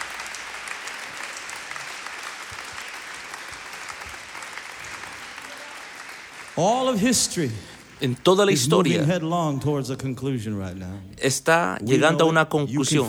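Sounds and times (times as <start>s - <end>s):
audience applause: 0.0s - 9.3s
speech: 6.6s - 13.0s.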